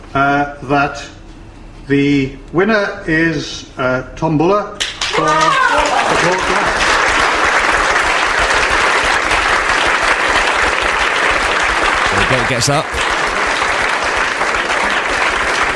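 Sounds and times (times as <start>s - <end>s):
speech: 0.2s - 1.2s, 1.9s - 6.7s, 12.4s - 13.2s
applause: 4.8s - 15.7s.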